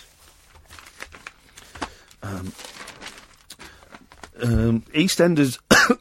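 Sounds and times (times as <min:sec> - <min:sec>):
soft shuffling and tapping: 0:00.0 - 0:05.0
paper rustling and crinkling: 0:00.0 - 0:05.1
speech: 0:02.3 - 0:02.7, 0:04.4 - 0:05.9
short throaty cough: 0:05.7 - 0:05.9.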